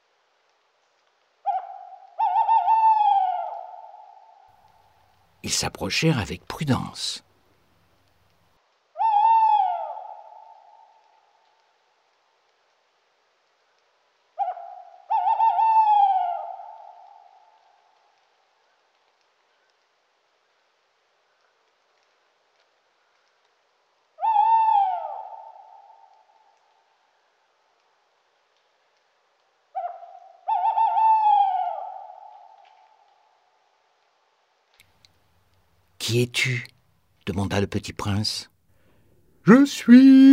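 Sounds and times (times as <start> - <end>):
owl hooting: 1.4 - 4.5, 9.0 - 11.1, 14.4 - 17.8, 24.2 - 26.6, 29.7 - 33.2
speech: 5.4 - 7.3, 36.1 - 36.7, 37.3 - 38.5, 39.4 - 40.3.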